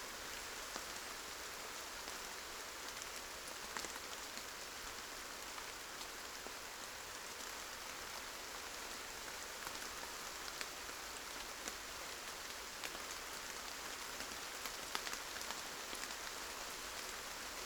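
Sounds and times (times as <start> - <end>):
rain shower onset: 0.1 - 17.6.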